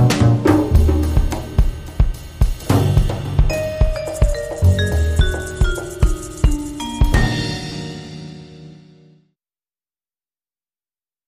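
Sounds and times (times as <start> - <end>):
quirky jazz club music: 0.0 - 1.8, 2.7 - 8.8.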